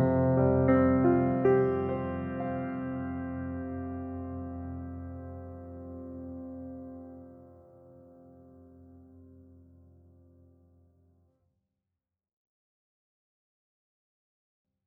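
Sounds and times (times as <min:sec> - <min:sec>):
romantic piano solo: 0:00.0 - 0:10.5.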